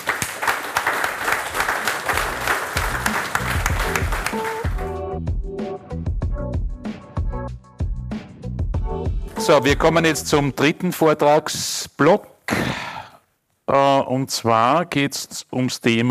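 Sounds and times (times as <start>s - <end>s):
crowd applauding: 0.0s - 4.9s
rhythmic music with a regular thumping beat: 2.1s - 10.6s
speech: 9.5s - 12.3s, 13.7s - 16.1s.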